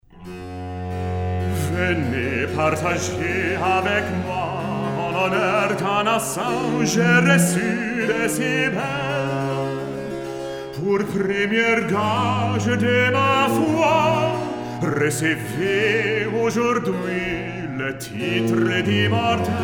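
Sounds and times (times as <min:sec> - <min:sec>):
recitative and aria: 0:00.0 - 0:19.6.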